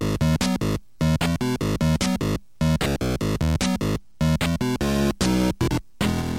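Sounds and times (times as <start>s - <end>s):
electronic video game music loops: 0.0s - 6.3s.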